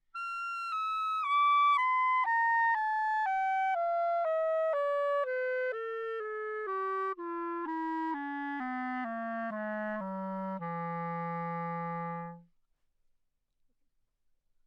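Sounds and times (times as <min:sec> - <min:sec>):
classical clarinet playing C in an anechoic chamber: 0:00.2 - 0:12.5.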